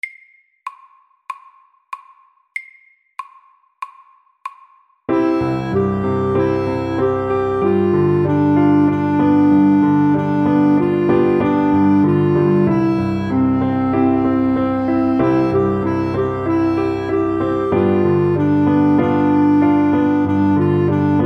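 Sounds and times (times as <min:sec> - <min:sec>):
Welsh melody: 0:05.1 - 0:21.2.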